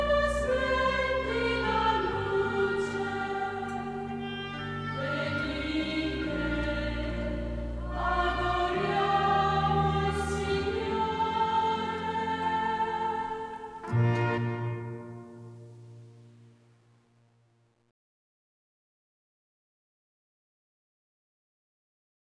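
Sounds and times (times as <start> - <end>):
tenors singing: 0.0 - 15.6.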